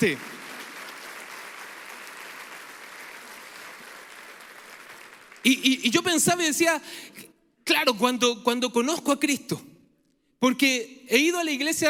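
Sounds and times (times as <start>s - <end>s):
speech: 0.0s - 0.3s, 5.4s - 9.7s, 10.4s - 11.8s
audience applause: 0.0s - 5.7s.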